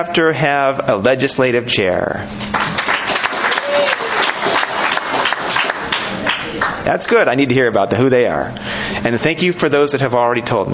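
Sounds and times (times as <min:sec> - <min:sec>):
speech: 0:00.0 - 0:02.5, 0:06.9 - 0:10.7
audience clapping hands: 0:02.4 - 0:06.8.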